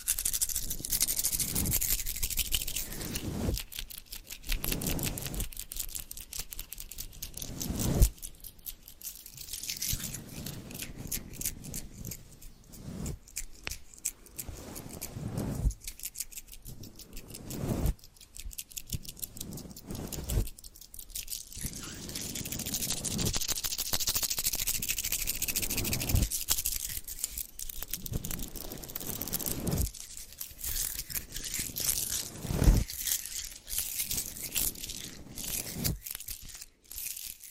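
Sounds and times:
crinkling: 0:00.0 - 0:37.5
scratching: 0:00.0 - 0:37.5
squeezing: 0:00.0 - 0:37.5.

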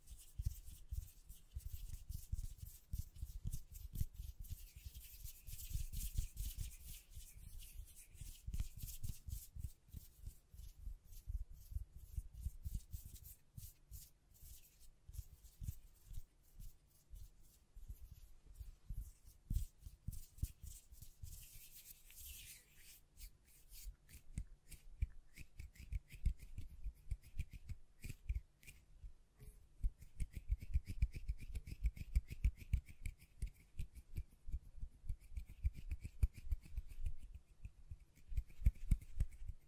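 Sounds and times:
hands tapping and scratching against a microphone: 0:00.1 - 0:28.8, 0:29.8 - 0:39.6.

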